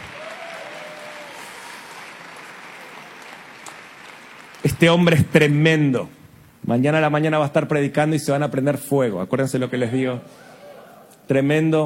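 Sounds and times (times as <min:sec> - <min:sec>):
audience applause: 0:00.0 - 0:05.8
speech: 0:04.7 - 0:10.5, 0:11.3 - 0:11.8.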